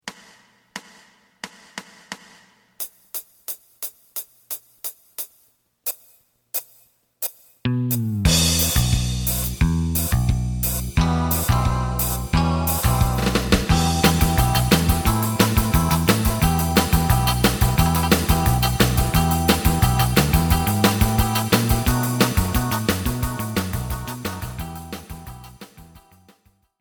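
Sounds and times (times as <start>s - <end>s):
lead melody: 8.0s - 26.1s.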